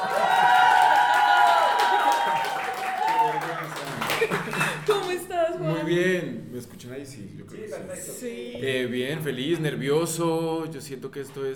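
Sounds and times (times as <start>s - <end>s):
giant applause: 0.0s - 5.3s
laughter: 1.6s - 5.3s
speech: 5.9s - 11.5s.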